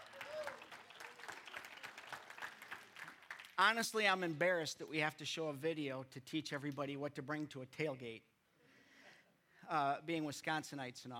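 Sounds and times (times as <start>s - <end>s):
crowd applause: 0.0s - 3.6s
speech: 3.6s - 8.3s, 9.7s - 11.1s.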